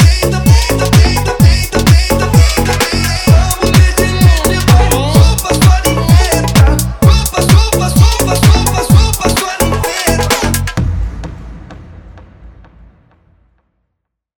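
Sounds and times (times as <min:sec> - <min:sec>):
car audio music: 0:00.0 - 0:10.8.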